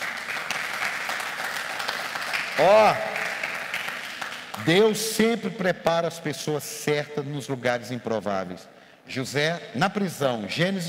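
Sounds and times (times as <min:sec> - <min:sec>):
audience applause: 0:00.0 - 0:04.9
speech: 0:02.6 - 0:03.2, 0:04.6 - 0:10.8.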